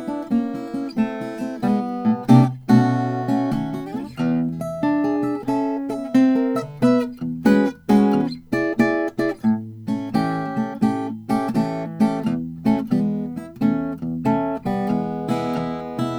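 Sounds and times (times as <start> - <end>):
Lowden WL50 acoustic guitar: 0.0 - 16.1.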